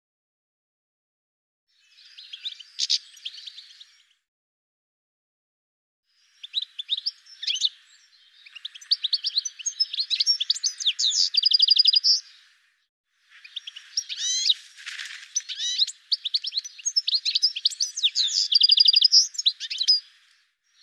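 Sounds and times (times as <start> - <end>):
bird chirps and trills: 1.8 - 4.1, 6.2 - 12.5, 13.2 - 20.8.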